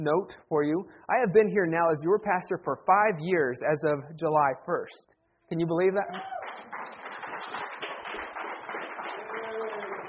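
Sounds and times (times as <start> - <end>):
speech: 0.0 - 7.6
audience applause: 6.1 - 10.0.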